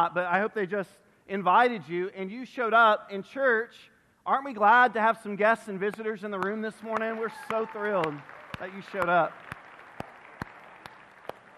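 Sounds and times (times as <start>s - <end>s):
speech: 0.0s - 9.5s
hiss: 0.0s - 11.5s
church audience hand claps: 5.9s - 11.5s.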